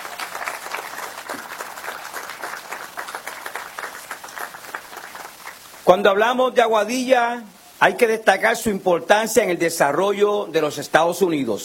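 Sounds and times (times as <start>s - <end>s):
audience applause: 0.0s - 5.8s
speech: 5.9s - 11.6s.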